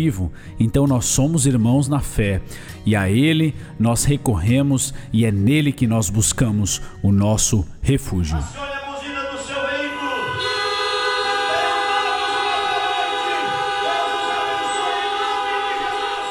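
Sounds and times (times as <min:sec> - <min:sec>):
speech: 0:00.0 - 0:08.8
car horns blaring together: 0:09.5 - 0:16.3.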